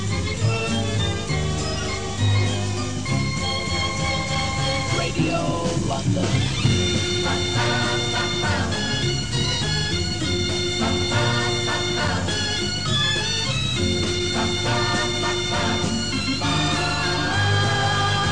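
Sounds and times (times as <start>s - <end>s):
musical theme: 0.0s - 18.3s.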